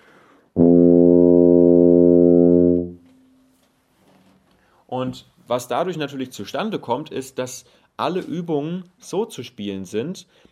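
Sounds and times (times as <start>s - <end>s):
tuba notes on B-flat and F tuba: 0.6s - 3.2s
speech: 5.0s - 10.5s.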